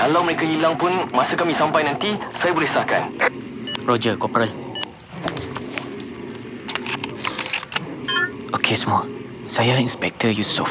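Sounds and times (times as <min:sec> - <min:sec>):
speech: 0:00.0 - 0:04.6, 0:08.7 - 0:10.7
camera clicks and mechanical ticks while recording: 0:06.6 - 0:07.9.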